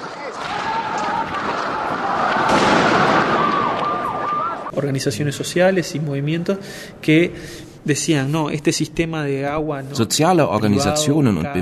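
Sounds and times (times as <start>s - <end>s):
gunshots during street protest: 0.0s - 4.7s
sirens during street protest: 1.0s - 4.7s
speech: 4.8s - 11.6s.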